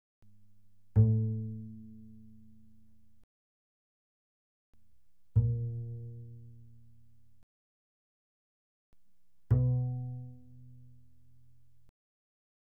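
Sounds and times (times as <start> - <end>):
fortissimo double bass pizzicato on the D string: 0.8 - 3.2, 5.3 - 7.4, 9.4 - 11.9.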